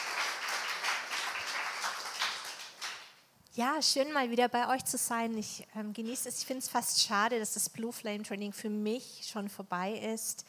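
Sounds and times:
audience applause: 0.0 - 3.1
speech: 3.6 - 10.4.

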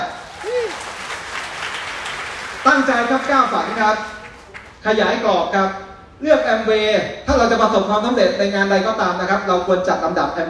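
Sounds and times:
audience applause: 0.0 - 4.8
speech: 2.6 - 4.2, 4.8 - 10.4.

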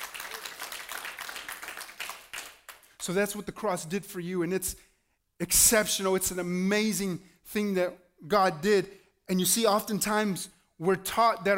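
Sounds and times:
audience clapping hands: 0.0 - 3.0
speech: 3.0 - 11.5.

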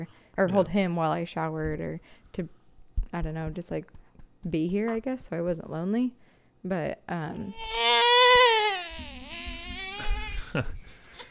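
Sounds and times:
speech: 0.0 - 8.1, 10.5 - 10.8
baby fussing and crying: 7.4 - 10.6.

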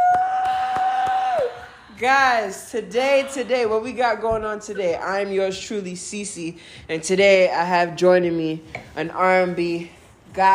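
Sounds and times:
hands clapping: 0.0 - 1.8
person cheering whoop: 0.0 - 2.5
speech: 2.0 - 10.5.

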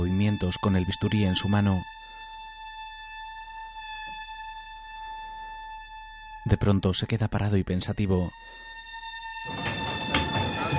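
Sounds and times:
speech: 0.5 - 2.0, 6.4 - 8.6
metro train electric whine in a tunnel: 8.5 - 10.7.

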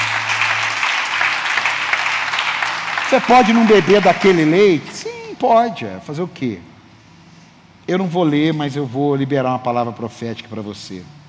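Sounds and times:
audience applause: 0.0 - 5.0
speech: 3.1 - 6.7, 7.9 - 11.2.

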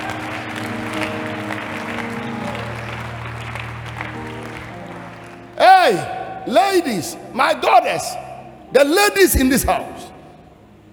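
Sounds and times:
audience clapping: 0.0 - 6.2
speech: 5.9 - 10.0.

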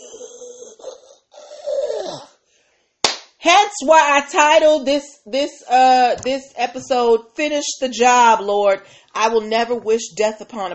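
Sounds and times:
person imitating wheezing strained breath: 0.0 - 2.4
speech: 3.4 - 10.7.

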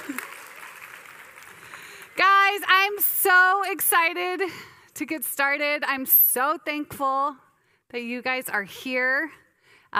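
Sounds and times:
group clapping: 0.0 - 3.1
speech: 2.6 - 9.9.

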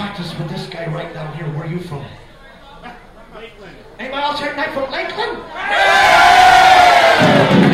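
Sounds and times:
speech: 0.2 - 6.3
audience clapping and cheering: 5.8 - 7.7.

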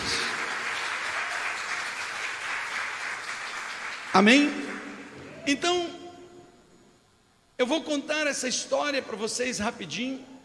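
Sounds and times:
audience applause: 0.0 - 4.9
speech: 4.2 - 4.6, 5.5 - 6.0, 7.6 - 10.3.

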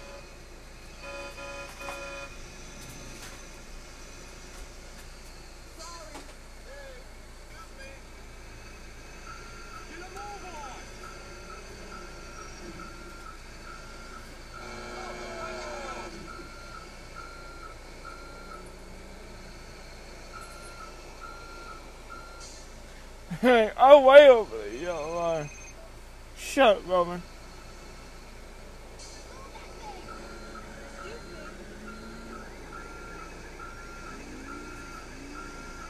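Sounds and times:
truck engine low rumble: 0.0 - 35.8
truck reversing alarm beeps: 9.2 - 22.7, 24.9 - 25.8, 29.0 - 35.8
speech: 23.4 - 25.5, 26.6 - 27.3.

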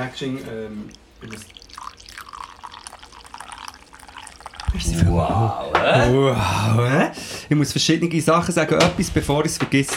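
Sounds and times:
speech: 0.0 - 1.6, 4.7 - 9.9
coffee poured from a moka pot: 0.5 - 5.2.

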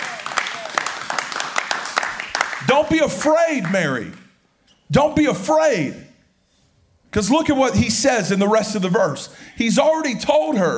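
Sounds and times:
audience clapping: 0.0 - 4.4
speech: 2.7 - 4.2, 4.9 - 6.0, 7.1 - 10.7.

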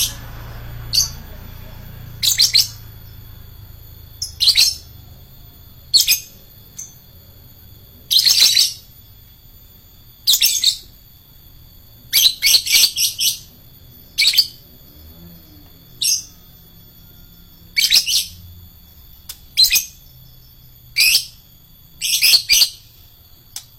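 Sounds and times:
lovebird screeching: 2.0 - 3.2, 4.2 - 5.2, 5.9 - 7.0, 8.0 - 9.0, 10.2 - 11.0, 12.1 - 14.6, 15.9 - 18.5, 19.5 - 20.1, 22.0 - 23.0.

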